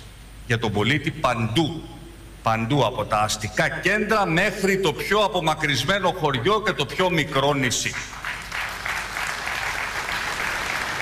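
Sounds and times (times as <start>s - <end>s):
speech: 0.5s - 8.2s
sparse applause from an audience: 8.1s - 11.0s.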